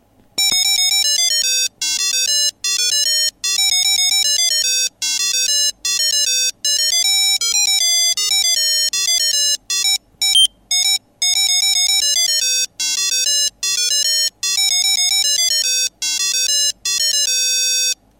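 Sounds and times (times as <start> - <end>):
melody: 0.4 - 18.0.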